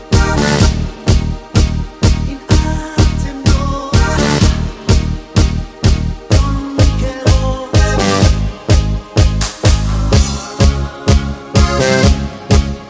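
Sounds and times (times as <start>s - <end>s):
lead synth with choir: 0.1s - 1.3s, 2.3s - 5.3s, 6.3s - 12.5s.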